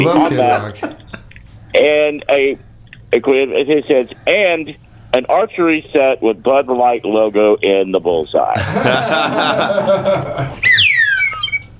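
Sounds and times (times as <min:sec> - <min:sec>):
speech: 0:00.0 - 0:01.0, 0:01.8 - 0:10.7
chuckling: 0:00.0 - 0:01.4, 0:08.6 - 0:10.8
sad whistle sliding downward: 0:10.6 - 0:11.7.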